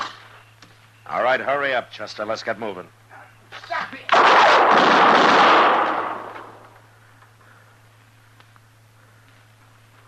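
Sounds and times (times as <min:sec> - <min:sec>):
speech: 0:01.1 - 0:04.0
gunshot in a drama: 0:04.1 - 0:06.6.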